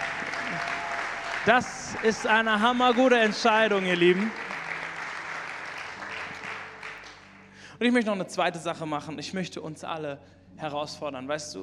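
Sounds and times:
church congregation applauding during a service: 0.0 - 7.6
speech: 1.5 - 4.4, 7.8 - 11.6.

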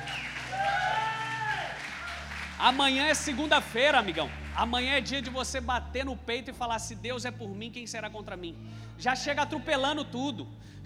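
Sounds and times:
whoops and whistles: 0.0 - 1.8
crowd applauding: 0.0 - 5.5
speech: 2.6 - 10.8.

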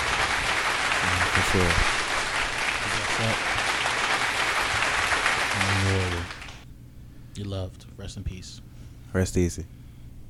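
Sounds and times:
applause: 0.0 - 6.6
speech: 1.5 - 2.0, 3.2 - 3.5, 7.4 - 9.8.

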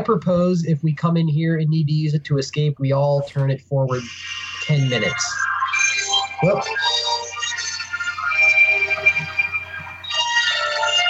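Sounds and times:
speech: 0.0 - 7.0
cell phone ringtone: 4.0 - 11.0.

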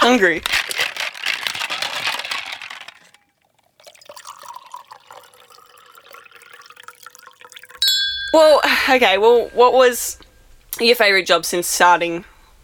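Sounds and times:
cheese ball pulled from crunchy bag: 0.0 - 5.8
speech: 0.2 - 0.6, 8.4 - 10.2, 10.8 - 12.6.

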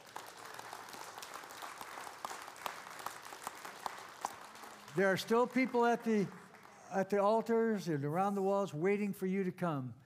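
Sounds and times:
audience applause: 0.0 - 7.8
speech: 5.0 - 10.0.

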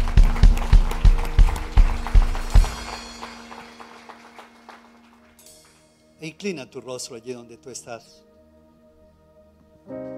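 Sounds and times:
audience applauding: 0.0 - 5.9
speech: 6.2 - 8.3.

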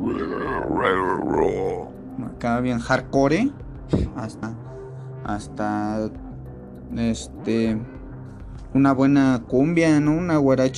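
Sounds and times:
pig grunting: 0.0 - 1.9
speech: 0.1 - 6.2, 6.9 - 8.0, 8.7 - 10.7.

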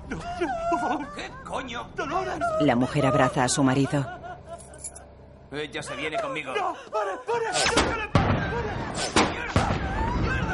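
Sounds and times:
laughter: 0.0 - 1.8, 3.8 - 4.8
speech: 0.1 - 4.2, 5.5 - 9.5
gunshots at car tires: 7.6 - 10.5.

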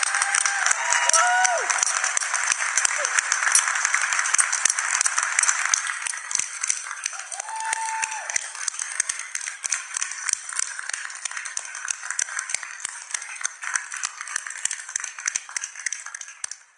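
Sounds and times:
audience applause: 0.0 - 16.7.

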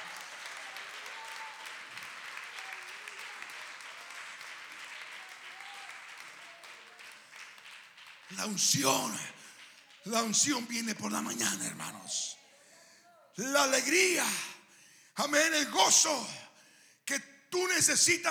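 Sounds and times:
audience clapping hands: 0.0 - 12.2
speech: 8.3 - 9.3, 10.0 - 12.4, 13.4 - 14.5, 15.2 - 16.4, 17.1 - 18.2.

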